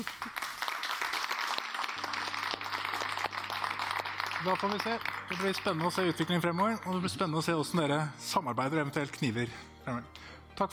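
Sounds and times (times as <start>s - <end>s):
crowd applauding for a panel: 0.0s - 7.0s
speech: 4.4s - 10.7s.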